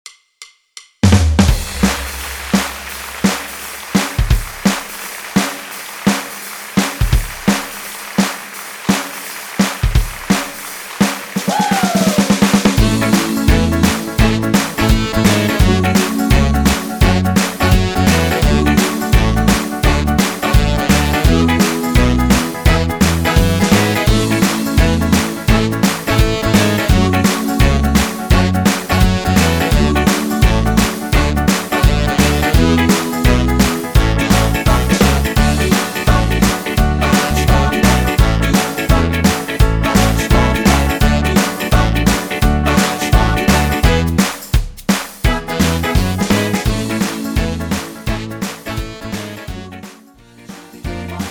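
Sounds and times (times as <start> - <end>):
Yamaha MIDI music: 1.1 - 51.2.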